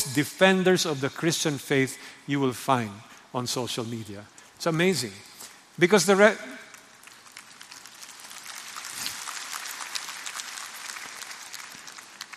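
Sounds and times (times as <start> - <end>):
speech: 0.1 - 6.6
audience clapping: 6.1 - 12.3.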